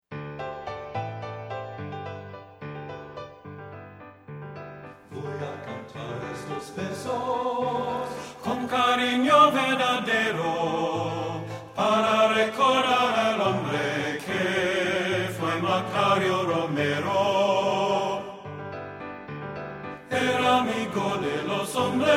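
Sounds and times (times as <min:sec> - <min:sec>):
tenor singing: 0:05.1 - 0:18.5, 0:20.0 - 0:22.1.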